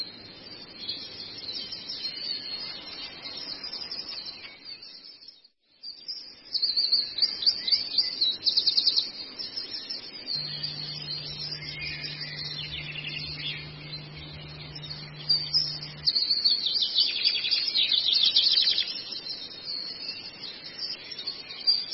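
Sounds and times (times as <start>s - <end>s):
Long-tailed shrike twittering song: 0.4s - 21.9s
low steady hum: 10.3s - 16.5s.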